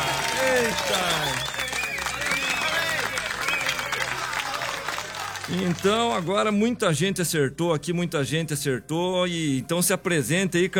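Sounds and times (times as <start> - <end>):
audience applause: 0.0 - 6.3
speech: 0.7 - 1.5, 5.5 - 10.7.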